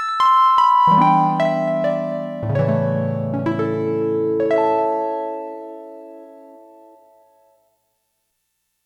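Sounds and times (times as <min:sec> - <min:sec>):
Roland JX-1 synthesizer harp factory preset: 0:00.9 - 0:06.9.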